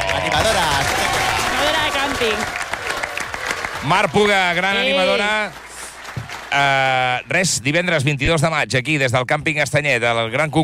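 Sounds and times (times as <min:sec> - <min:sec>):
audience clapping at a contest at the Estanyet campsite: 0:00.0 - 0:08.0
speech: 0:03.8 - 0:05.7, 0:06.5 - 0:10.6.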